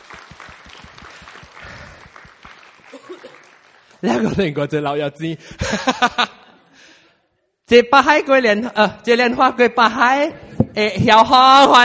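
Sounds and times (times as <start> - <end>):
audience applause: 0.0 - 4.5
laughter: 2.8 - 4.6, 5.5 - 6.7
speech: 4.0 - 6.4, 7.7 - 11.8.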